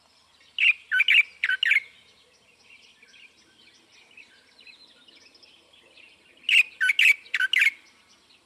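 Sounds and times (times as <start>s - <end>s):
light-vented bulbul calling: 0.5s - 2.1s, 2.8s - 8.1s.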